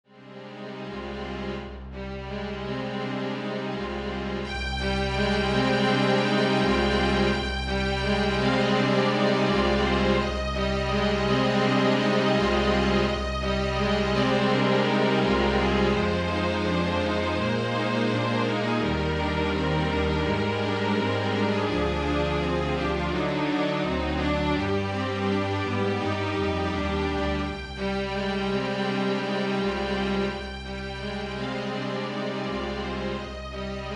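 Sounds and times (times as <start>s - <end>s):
quartet playing: 1.3s - 33.9s.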